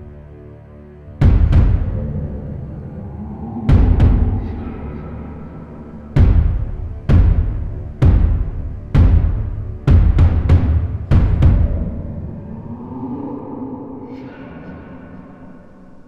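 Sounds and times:
dramatic percussion: 0:01.2 - 0:13.7.

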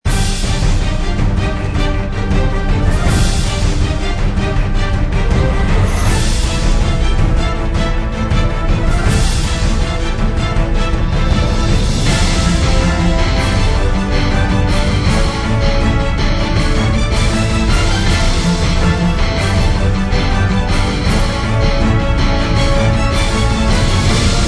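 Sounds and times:
battle background music: 0:00.0 - 0:24.4.

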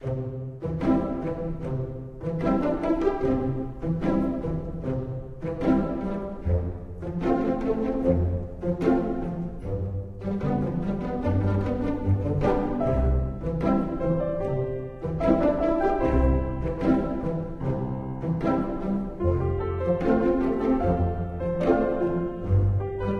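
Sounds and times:
casual theme music: 0:00.0 - 0:23.1.

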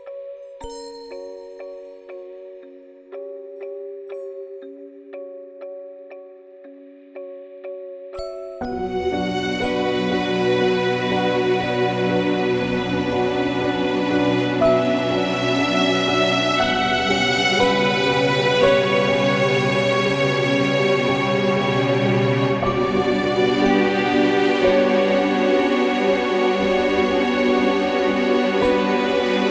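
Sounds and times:
ending music: 0:08.8 - 0:29.4.

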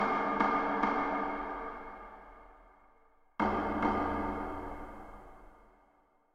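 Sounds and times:
taiko drum loop: 0:00.0 - 0:02.3, 0:03.4 - 0:05.3.

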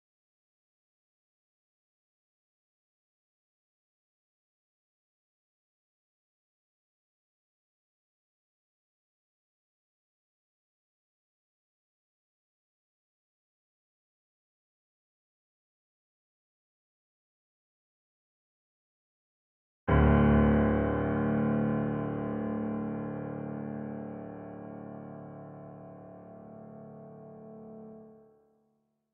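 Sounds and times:
piano: 0:19.9 - 0:29.1.

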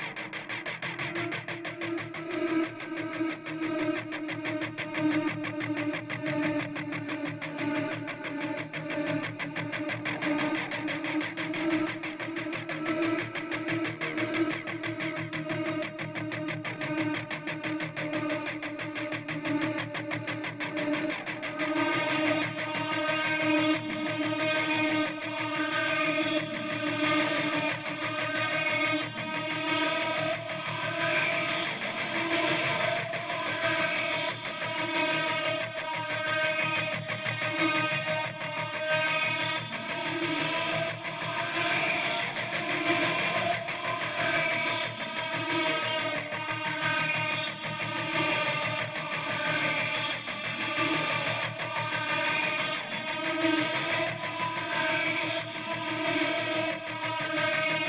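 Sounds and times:
synthwave guitar at 91 bpm: 0:00.0 - 0:57.8.

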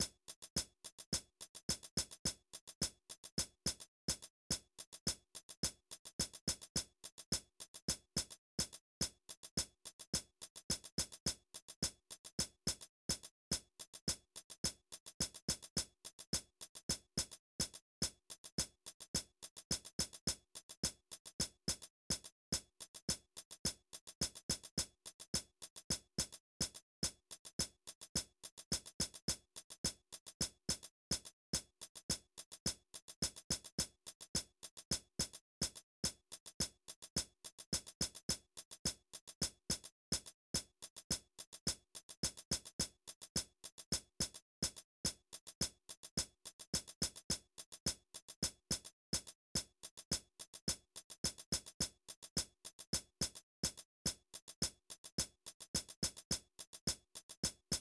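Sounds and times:
hi-hats in main music: 0:00.0 - 0:57.7.

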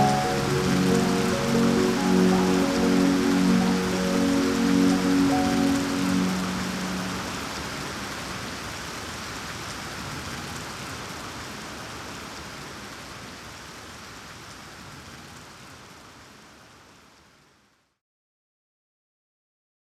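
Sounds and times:
dream music: 0:00.0 - 0:07.8
rain: 0:00.0 - 0:18.0.

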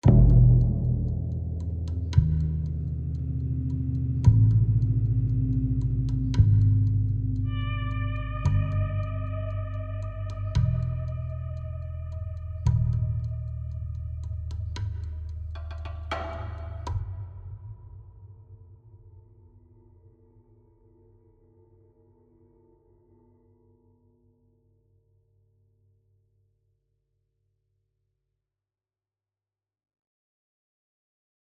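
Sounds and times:
tension music: 0:00.0 - 0:17.9.

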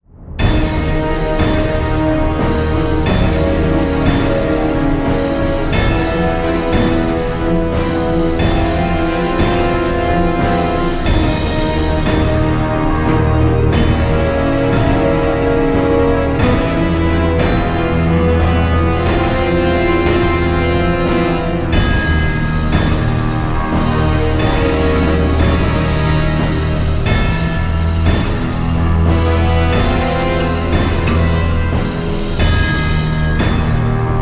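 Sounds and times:
short dramatic music: 0:00.1 - 0:34.2.

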